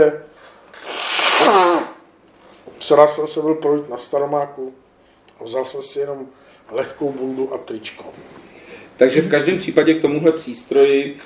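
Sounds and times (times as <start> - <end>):
speech: 0.0 - 0.9, 2.9 - 4.8, 5.4 - 11.2
person blowing nose: 0.8 - 2.0.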